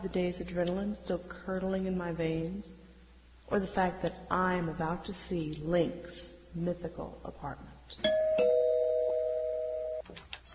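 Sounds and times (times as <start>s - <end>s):
speech: 0.0s - 2.9s, 3.5s - 8.5s
electronic doorbell ringing: 8.0s - 10.0s.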